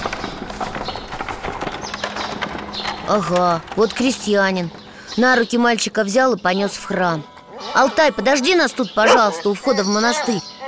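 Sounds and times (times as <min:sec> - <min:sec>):
horse hooves of a horse-drawn cart clip-clopping: 0:00.0 - 0:04.9
speech: 0:03.1 - 0:10.5.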